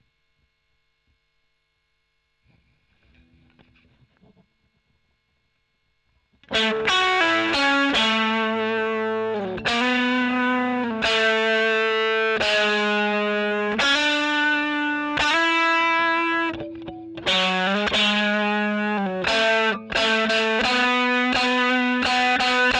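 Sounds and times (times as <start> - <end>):
overdriven electric guitar: 6.4 - 22.7.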